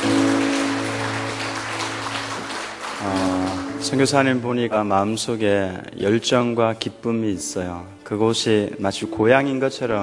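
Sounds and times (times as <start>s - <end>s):
audience applause: 0.0s - 4.5s
speech: 3.8s - 10.0s.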